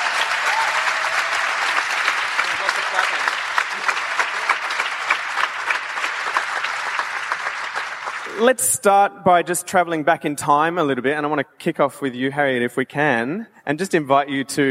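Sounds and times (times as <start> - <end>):
audience applause: 0.0 - 8.6
speech: 8.4 - 14.6.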